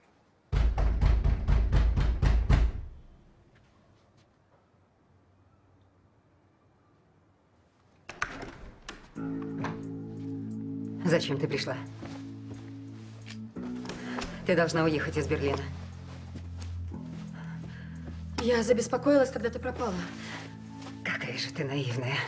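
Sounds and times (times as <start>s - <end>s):
knocking on Lorraine's room door: 0.5s - 2.9s
speech: 11.1s - 12.1s, 14.5s - 15.8s, 18.4s - 20.4s, 21.3s - 22.2s.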